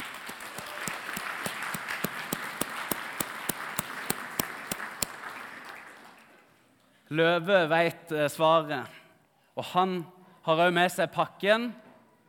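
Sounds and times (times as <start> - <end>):
audience applause: 0.0 - 6.6
speech: 7.1 - 9.0, 9.6 - 11.8.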